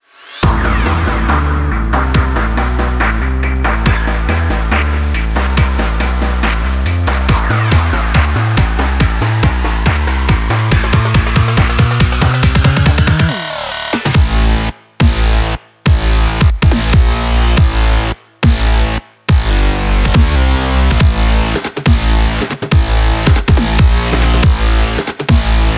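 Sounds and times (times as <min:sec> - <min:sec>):
EDM at 140 bpm in C: 0:00.4 - 0:25.7.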